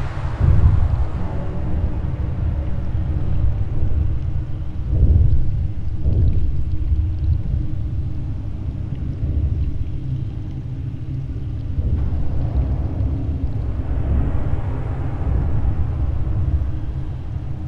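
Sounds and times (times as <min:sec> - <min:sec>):
ambience: 0:00.0 - 0:17.6.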